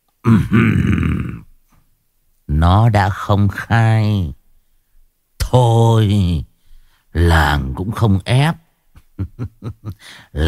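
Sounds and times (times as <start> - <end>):
speech: 0.2 - 1.3, 2.6 - 4.4, 5.5 - 6.5, 7.2 - 8.6, 9.2 - 10.4
low-pitched throat clearing ahem: 0.2 - 1.5.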